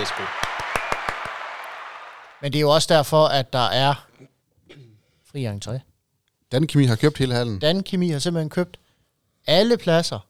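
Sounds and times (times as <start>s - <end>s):
speech: 0.0s - 0.4s, 2.4s - 4.1s, 4.7s - 5.9s, 6.5s - 8.8s, 9.4s - 10.2s
hand clapping: 0.0s - 2.4s.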